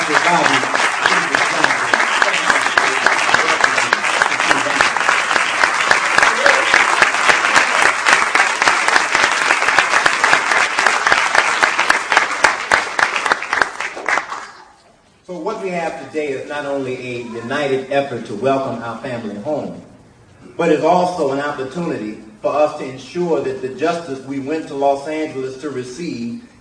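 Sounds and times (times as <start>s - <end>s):
large audience applause: 0.0s - 14.8s
speech: 0.1s - 0.8s, 16.1s - 19.9s, 20.6s - 26.5s.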